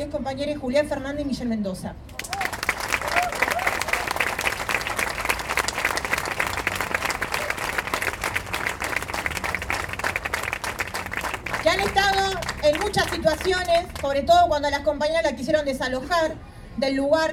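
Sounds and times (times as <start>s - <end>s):
speech: 0.0s - 2.3s, 13.1s - 17.3s
audience applause: 2.2s - 14.0s.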